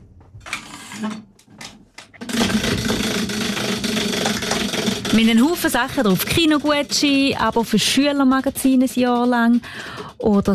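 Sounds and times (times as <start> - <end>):
knocks and rattles: 0.2 - 10.5
speech: 1.0 - 1.3, 5.2 - 10.5
prize wheel spinning and clattering: 2.2 - 10.5.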